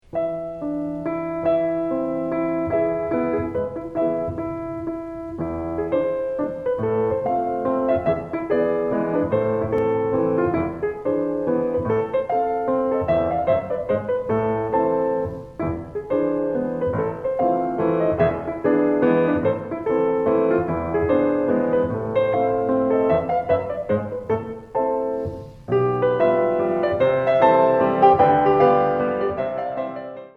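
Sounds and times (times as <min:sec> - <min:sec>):
pirouette: 0:00.0 - 0:30.3.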